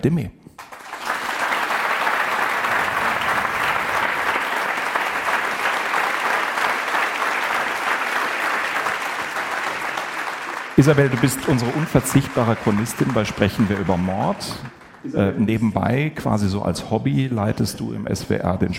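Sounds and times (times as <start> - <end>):
speech: 0.0 - 0.4, 10.8 - 18.7
audience applause: 0.6 - 15.6.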